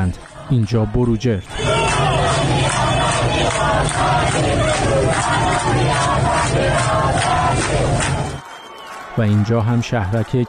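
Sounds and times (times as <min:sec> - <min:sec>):
speech: 0:00.0 - 0:01.7, 0:02.4 - 0:08.4, 0:09.2 - 0:10.4
protesters chanting in the street: 0:01.4 - 0:08.4.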